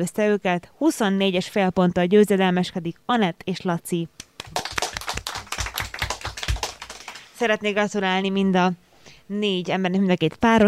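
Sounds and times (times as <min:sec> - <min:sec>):
speech: 0:00.0 - 0:04.6, 0:07.4 - 0:10.6
game-show studio audience clapping: 0:04.2 - 0:07.3.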